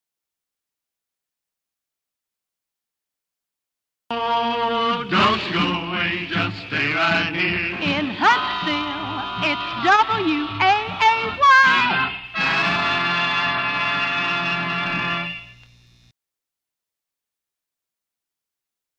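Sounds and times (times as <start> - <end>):
radio jingle: 5.1 - 16.0.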